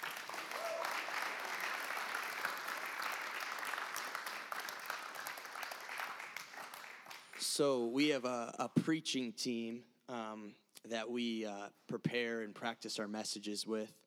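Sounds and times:
audience applause: 0:00.0 - 0:07.4
speech: 0:07.6 - 0:14.0.

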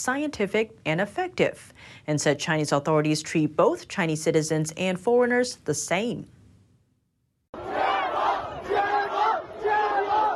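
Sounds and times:
speech: 0:00.0 - 0:06.4
student protest crowd chanting in unison: 0:07.6 - 0:10.3.

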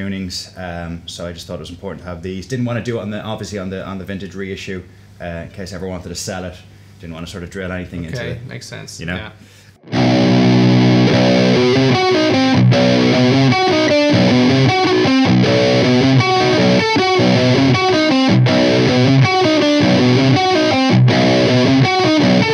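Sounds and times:
speech: 0:00.0 - 0:10.3
distorted electric guitar through fuzz pedal: 0:09.8 - 0:22.5.

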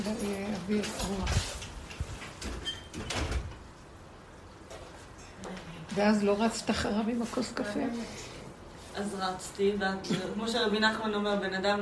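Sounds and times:
speech: 0:00.0 - 0:01.6, 0:06.0 - 0:08.3, 0:09.0 - 0:11.8
sliding door closing at home: 0:02.3 - 0:03.7.

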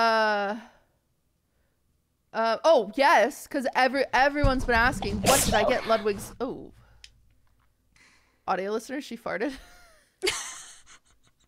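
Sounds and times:
speech: 0:02.4 - 0:06.8, 0:08.5 - 0:10.6
person sneezing: 0:05.2 - 0:06.2.

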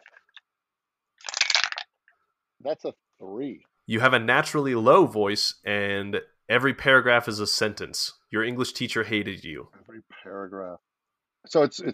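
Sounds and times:
dice rolling through a dice tower: 0:01.2 - 0:02.0
speech: 0:02.6 - 0:11.9.

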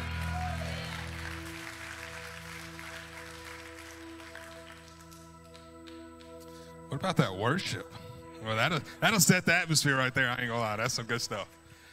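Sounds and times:
audience clapping: 0:00.0 - 0:06.5
low organ-like hum: 0:00.0 - 0:11.9
speech: 0:07.0 - 0:11.6.

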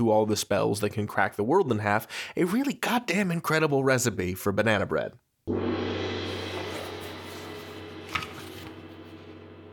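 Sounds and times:
speech: 0:00.0 - 0:05.6
traditional end-of-episode gong: 0:05.5 - 0:09.7
magic tome opening: 0:06.5 - 0:08.8.

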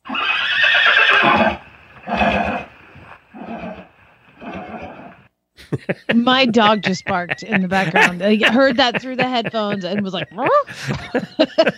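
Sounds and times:
pony whinnying: 0:00.0 - 0:05.3
laughter: 0:05.6 - 0:11.7
speech: 0:05.7 - 0:11.7.

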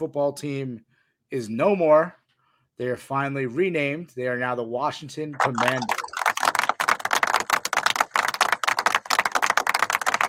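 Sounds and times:
speech: 0:00.0 - 0:02.2, 0:02.8 - 0:06.0
hand clapping: 0:05.4 - 0:10.2.

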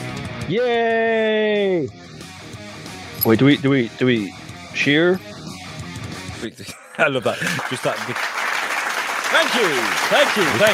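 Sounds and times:
speech: 0:00.5 - 0:02.0, 0:03.2 - 0:05.3, 0:06.4 - 0:08.4, 0:09.3 - 0:10.7
laughter: 0:06.7 - 0:08.5, 0:09.3 - 0:10.7
slow clap: 0:07.4 - 0:10.7.

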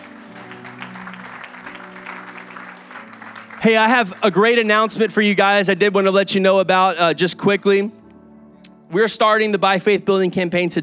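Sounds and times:
audience hand clapping: 0:00.0 - 0:05.2
speech: 0:03.6 - 0:08.0, 0:08.9 - 0:10.8.

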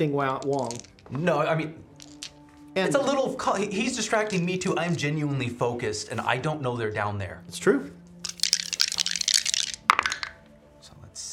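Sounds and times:
speech: 0:00.0 - 0:01.9, 0:02.8 - 0:08.0
eight dice rolling: 0:00.3 - 0:01.3, 0:01.9 - 0:02.5, 0:08.2 - 0:10.4.

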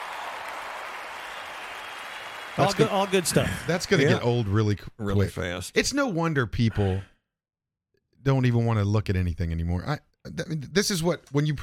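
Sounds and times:
applause: 0:00.0 - 0:04.2
speech: 0:02.6 - 0:07.1, 0:08.2 - 0:11.6.

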